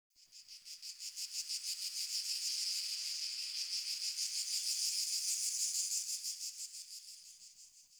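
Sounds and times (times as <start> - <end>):
insects: 0.2 - 7.9.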